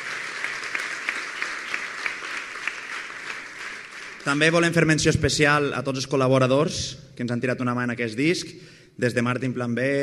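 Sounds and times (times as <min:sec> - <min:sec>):
audience applause: 0:00.0 - 0:04.7
speech: 0:04.2 - 0:10.0.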